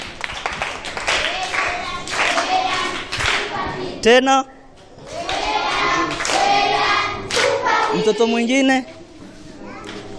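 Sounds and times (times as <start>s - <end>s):
church gathering clapping for a child: 0.0s - 3.9s, 4.9s - 8.1s, 9.8s - 10.1s
speech: 4.0s - 4.6s, 7.9s - 9.0s.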